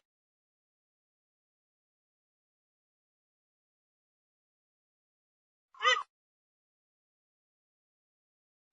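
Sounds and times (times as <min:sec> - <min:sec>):
grey-headed swamphen calls: 0:05.8 - 0:06.1.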